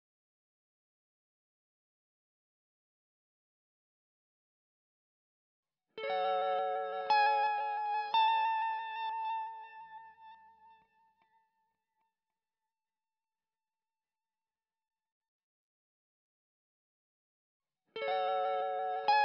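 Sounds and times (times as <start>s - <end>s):
electric guitar: 6.0s - 11.6s, 18.0s - 19.2s.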